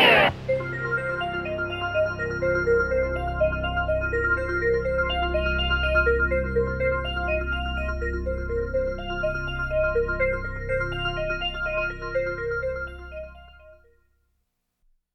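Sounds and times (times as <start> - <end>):
mysterious music: 0.2 - 13.8.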